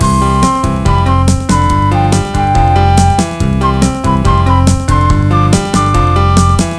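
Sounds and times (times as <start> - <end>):
music: 0.0 - 6.7.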